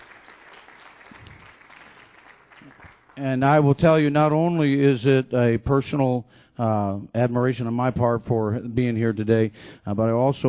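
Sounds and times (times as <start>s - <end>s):
audience hand clapping: 0.0s - 3.2s
speech: 3.2s - 10.4s.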